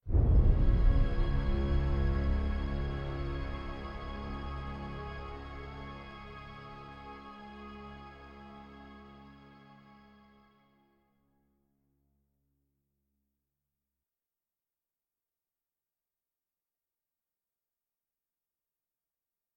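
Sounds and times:
suspense music: 0:00.1 - 0:06.8.

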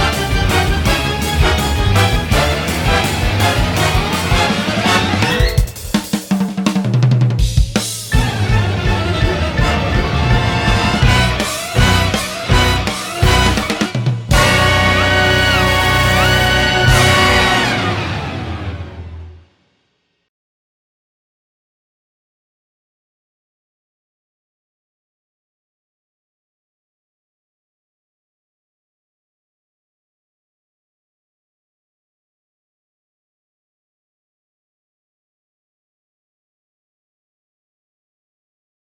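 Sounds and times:
rock jazz orchestra: 0:00.0 - 0:19.1.

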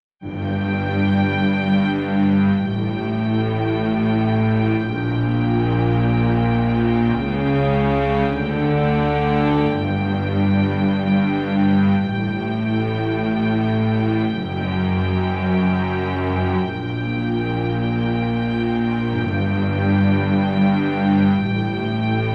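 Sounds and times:
bridge intro music: 0:00.2 - 0:22.3.

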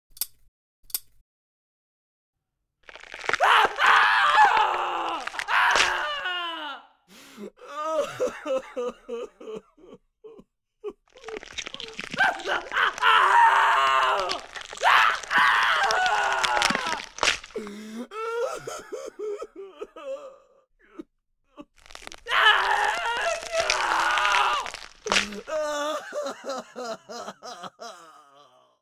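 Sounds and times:
tooth extraction: 0:02.9 - 0:03.8, 0:04.4 - 0:06.0, 0:11.1 - 0:17.7, 0:21.8 - 0:25.6
laughter: 0:08.0 - 0:09.9, 0:25.6 - 0:28.2.

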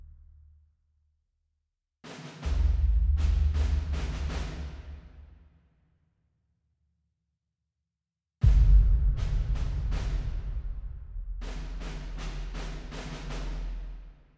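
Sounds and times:
militant drums: 0:02.1 - 0:05.0, 0:08.4 - 0:14.0.

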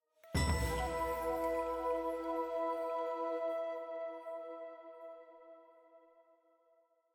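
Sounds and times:
flute in E: 0:00.2 - 0:06.2
jingle: 0:00.3 - 0:03.4
choir: 0:00.4 - 0:06.0.

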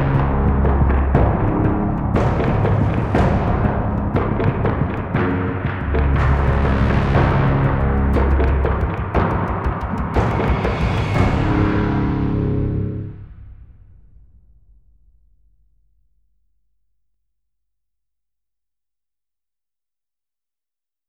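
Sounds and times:
suspense one-shot: 0:00.0 - 0:15.8.

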